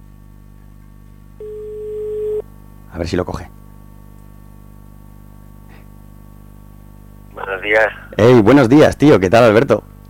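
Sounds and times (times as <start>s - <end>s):
phone ringback tone during outgoing call: 1.4s - 2.4s
speech: 3.0s - 3.6s, 7.6s - 9.9s.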